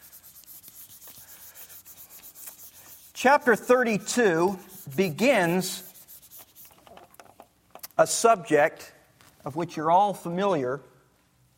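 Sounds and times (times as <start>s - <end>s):
eraser scrubbing writing off a board: 0.0s - 6.9s
speech: 3.2s - 5.9s, 8.0s - 10.9s.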